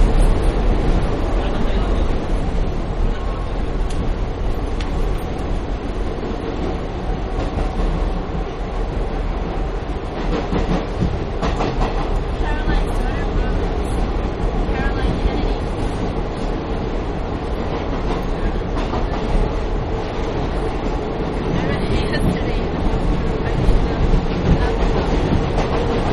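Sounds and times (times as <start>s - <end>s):
subway train ride heard on board: 0.0s - 26.1s.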